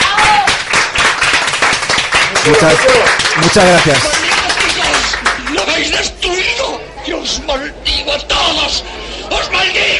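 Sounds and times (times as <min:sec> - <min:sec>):
audience applause: 0:00.0 - 0:05.9
speech: 0:02.4 - 0:04.2, 0:05.8 - 0:06.6, 0:07.2 - 0:09.9.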